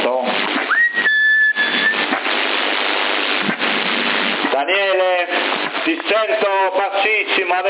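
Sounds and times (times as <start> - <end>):
loud crackling CB radio static: 0.0 - 7.6
CB radio end-of-transmission beep: 0.7 - 2.2
speech: 4.8 - 7.6.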